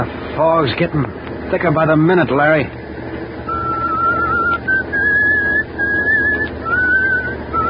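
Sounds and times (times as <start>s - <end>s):
speech: 0.0s - 2.8s
low rumble: 0.0s - 7.6s
person whistling a slow tune: 3.5s - 7.6s.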